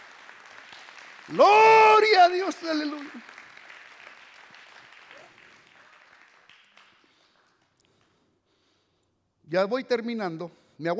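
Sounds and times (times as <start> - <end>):
audience applause: 0.0 - 7.7
speech: 1.3 - 3.3, 9.5 - 10.9.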